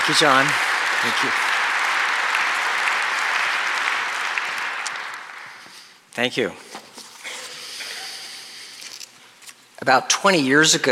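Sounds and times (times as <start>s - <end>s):
audience applause welcoming a speaker to the stage: 0.0s - 6.0s
speech: 0.1s - 1.5s, 6.2s - 6.7s, 9.8s - 10.9s.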